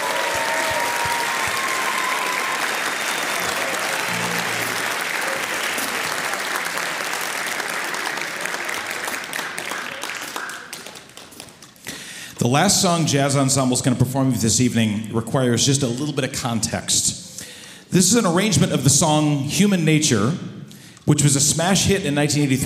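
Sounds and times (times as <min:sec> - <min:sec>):
concert audience applause: 0:00.0 - 0:11.8
speech: 0:12.4 - 0:17.2, 0:17.9 - 0:22.6.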